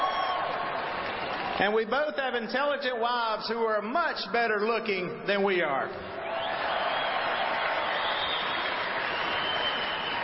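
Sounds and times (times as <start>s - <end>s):
audience cheering: 0.0s - 1.6s, 6.2s - 10.2s
audience applause: 0.0s - 1.7s, 6.3s - 10.2s
speech: 1.6s - 6.2s.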